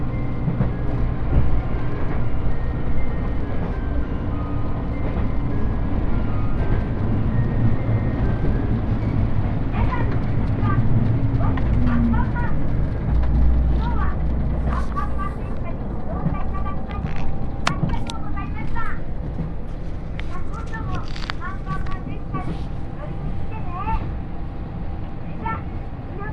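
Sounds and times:
Yosan Line limited express Uwakai train rumble and rattle: 0.0s - 26.3s
brief clicks and squeaks: 16.8s - 18.8s.

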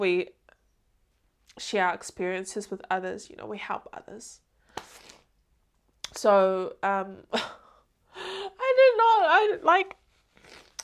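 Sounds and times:
speech: 0.0s - 0.4s, 1.6s - 4.4s, 6.2s - 7.6s, 9.0s - 10.0s
emotional teary person sniffing: 4.7s - 5.3s, 10.3s - 10.8s.

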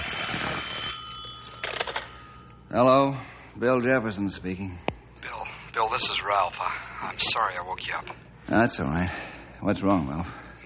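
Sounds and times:
telephone ringing: 0.0s - 2.6s
speech: 2.7s - 4.9s, 5.8s - 10.4s.

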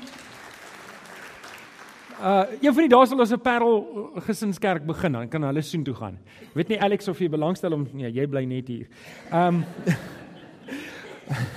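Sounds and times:
crowd clapping: 0.0s - 2.8s
speech: 2.2s - 10.2s, 11.3s - 11.5s
laughter: 9.0s - 11.5s.

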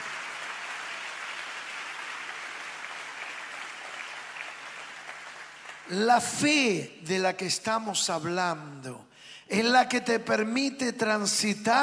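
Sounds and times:
audience applause: 0.0s - 5.9s
speech: 5.9s - 11.8s.

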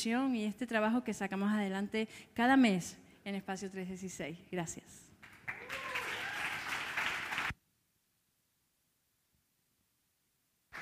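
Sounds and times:
speech: 0.0s - 5.1s
audience applause: 5.2s - 7.6s.

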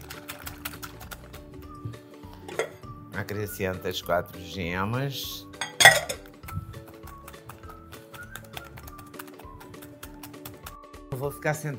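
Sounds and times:
beating egg whites in a bowl: 0.0s - 1.7s, 6.1s - 10.8s
speech: 3.2s - 5.5s, 11.2s - 11.7s.

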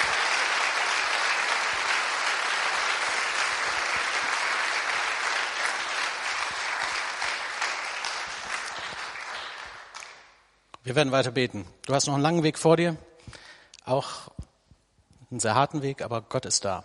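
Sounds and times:
audience applause: 0.0s - 10.3s
speech: 10.8s - 14.3s, 15.3s - 16.8s.

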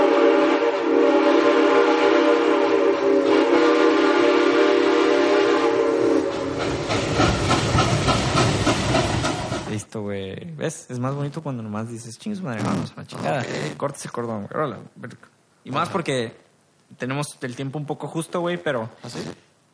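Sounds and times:
sustained whistle-like train tone: 0.0s - 6.8s
loud hissing steam: 0.0s - 9.8s
rapid rhythmic train chugging: 0.0s - 9.8s
speech: 10.7s - 19.5s.

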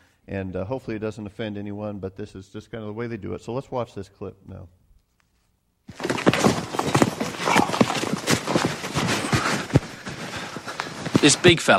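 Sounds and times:
speech: 0.3s - 4.8s, 11.2s - 11.7s
wild horse hooves clip-clopping: 5.9s - 11.7s.

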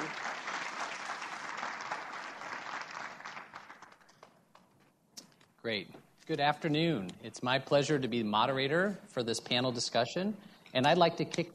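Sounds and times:
warm round of applause: 0.0s - 4.4s
speech: 5.6s - 11.5s.

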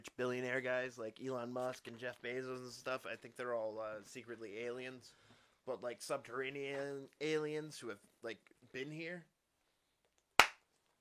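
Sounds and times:
speech: 0.2s - 9.3s
hand clap for audio sync: 10.4s - 10.7s.

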